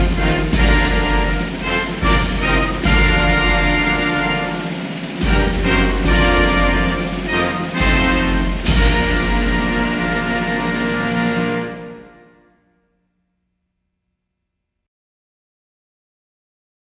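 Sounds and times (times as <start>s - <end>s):
national anthem army field: 0.0s - 12.5s.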